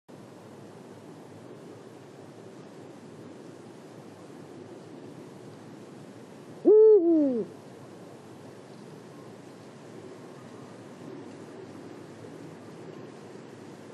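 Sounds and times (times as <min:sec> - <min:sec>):
Eurasian eagle-owl Bubo bubo booming hoot at Marianka, Slovakia: 0:06.7 - 0:07.5.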